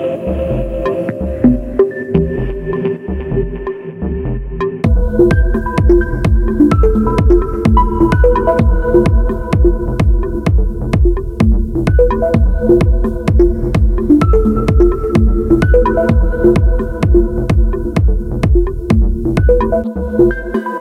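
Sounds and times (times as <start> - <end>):
degraded melodics: 0.0 - 10.4, 11.8 - 18.0
deep techno chords: 0.0 - 20.7.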